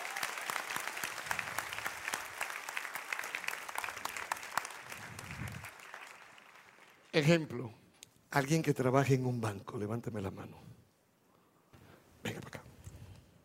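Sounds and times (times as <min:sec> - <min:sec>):
audience applause: 0:00.0 - 0:07.2
speech: 0:07.2 - 0:10.7.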